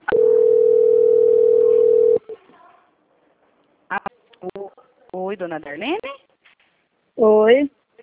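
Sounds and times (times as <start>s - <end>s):
telephone dial tone after a dropped call: 0.1s - 2.2s
speech: 5.4s - 6.0s, 7.2s - 7.8s.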